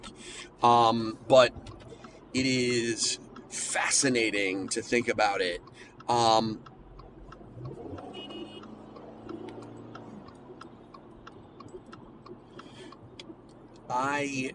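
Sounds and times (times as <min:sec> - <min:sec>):
speech: 0:00.0 - 0:01.7, 0:02.3 - 0:06.7, 0:13.9 - 0:14.5
low road rumble of a car merging onto a highway: 0:00.0 - 0:14.5
steady regular ticking inside a car: 0:00.0 - 0:14.5.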